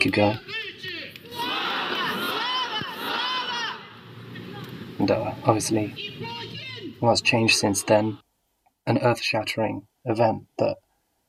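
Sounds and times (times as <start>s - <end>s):
speech: 0.0s - 0.6s, 5.0s - 8.2s, 8.8s - 10.8s
large crowd shouting and chanting outside an embassy: 0.4s - 8.2s.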